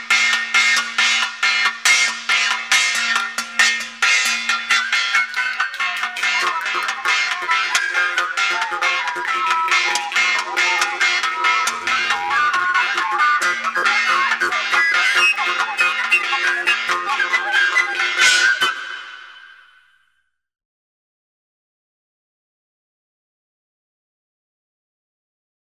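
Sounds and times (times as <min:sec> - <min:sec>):
vargan jaw harp: 0:00.0 - 0:19.7.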